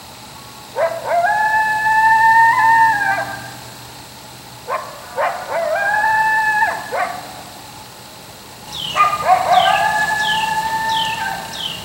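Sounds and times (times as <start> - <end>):
coyote howling: 0.8 - 3.7, 4.7 - 7.6, 8.7 - 11.8.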